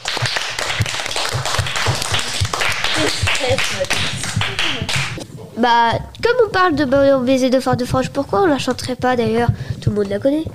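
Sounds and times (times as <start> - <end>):
audience clapping: 0.0 - 5.2
speech: 3.1 - 4.2, 5.6 - 10.5.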